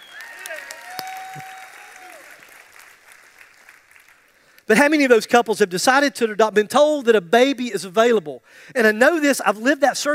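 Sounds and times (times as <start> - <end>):
audience applause: 0.0 - 4.5
speech: 4.7 - 10.1.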